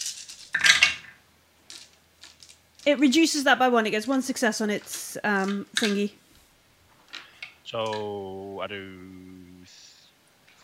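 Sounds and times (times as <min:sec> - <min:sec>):
dice being rolled: 0:00.0 - 0:06.1
speech: 0:02.8 - 0:06.2, 0:07.7 - 0:09.4.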